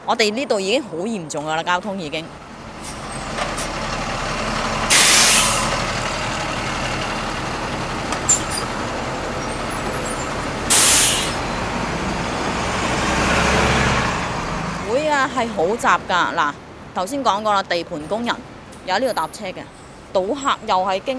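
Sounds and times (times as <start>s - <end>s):
people talking: 0.0s - 2.3s, 14.8s - 21.1s
buses and traffic rumbling at a bus stop: 0.0s - 21.1s
air brake hiss: 4.9s - 5.7s, 10.7s - 11.4s.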